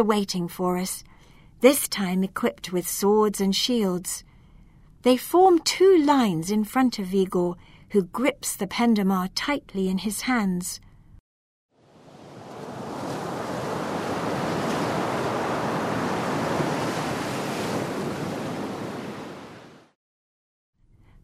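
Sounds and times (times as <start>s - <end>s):
speech: 0.0s - 4.3s, 5.0s - 10.9s
rumbling surf: 11.8s - 20.0s
storm wave crashing: 11.9s - 19.9s.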